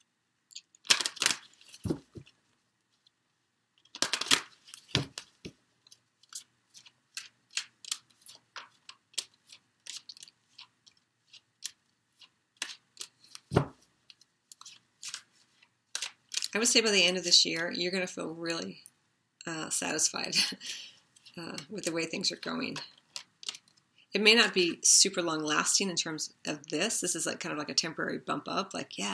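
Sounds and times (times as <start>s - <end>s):
cards drawn from a numerology card deck: 0.8s - 2.6s, 3.8s - 16.6s
speech: 16.6s - 18.9s, 19.5s - 23.0s, 24.1s - 29.1s.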